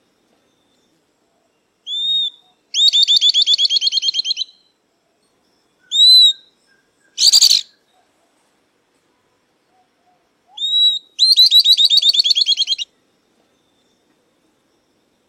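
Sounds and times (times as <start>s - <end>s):
southern beardless-tyrannulet song: 1.9s - 4.7s, 5.8s - 7.8s, 10.5s - 12.9s.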